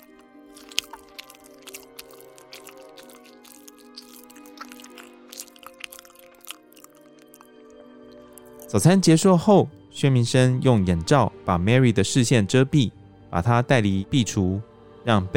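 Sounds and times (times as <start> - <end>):
people eating hungrily chewing: 0.0 - 8.8
speech: 8.7 - 15.3.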